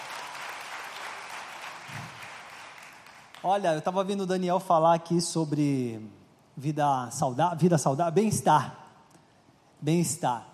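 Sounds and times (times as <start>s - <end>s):
crowd applauding: 0.0s - 3.6s
speech: 3.4s - 8.8s, 9.8s - 10.5s.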